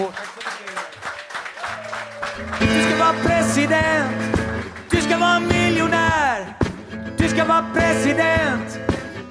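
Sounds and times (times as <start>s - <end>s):
speech: 0.0s - 0.5s, 2.6s - 4.4s, 7.2s - 9.0s
audience applause: 0.0s - 3.3s, 4.2s - 5.1s
overlapping voices: 0.0s - 6.4s.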